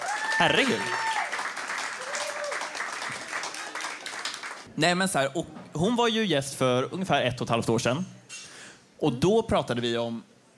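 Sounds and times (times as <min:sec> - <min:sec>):
audience applause: 0:00.0 - 0:04.7
speech: 0:00.4 - 0:01.1, 0:04.8 - 0:08.2, 0:09.0 - 0:10.5.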